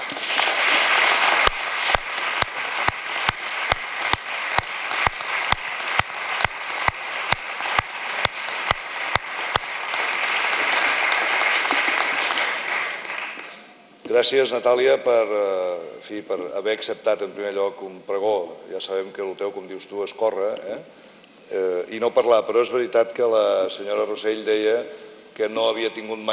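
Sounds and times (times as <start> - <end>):
strong applause: 0.0 - 13.8
speech: 14.2 - 26.3.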